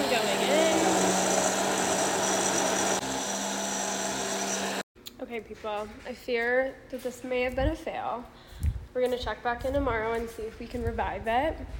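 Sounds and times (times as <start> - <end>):
immersion blender running: 0.0 - 4.8
speech: 5.3 - 11.7.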